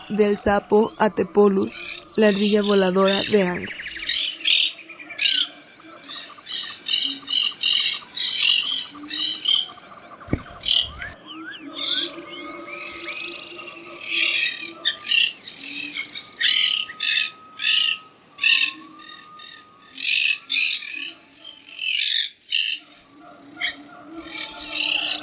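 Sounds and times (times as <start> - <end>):
long-tailed parakeets squawking: 0.0 - 25.2
speech: 0.1 - 3.8.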